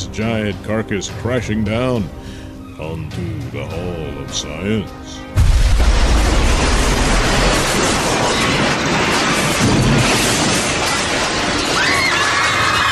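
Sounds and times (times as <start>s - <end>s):
speech: 0.2s - 2.2s, 2.8s - 5.2s
massive explosion: 5.4s - 12.6s.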